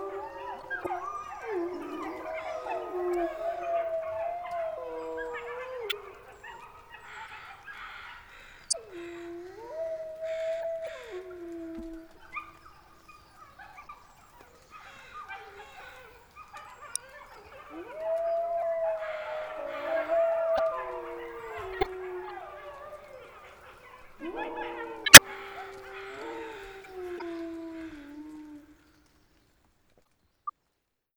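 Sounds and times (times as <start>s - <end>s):
wolf pack howling in the wilderness: 0.0s - 6.0s, 9.4s - 12.6s, 17.4s - 28.4s.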